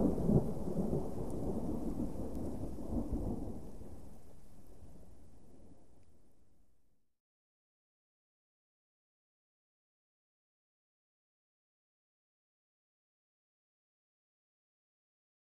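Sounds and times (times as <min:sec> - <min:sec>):
continuous distant thunder: 0:00.0 - 0:06.0.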